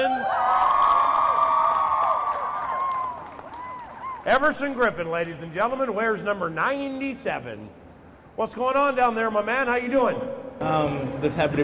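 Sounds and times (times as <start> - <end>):
crowd cheering and whooping: 0.0 - 4.4
speech: 4.2 - 7.8, 8.4 - 11.6.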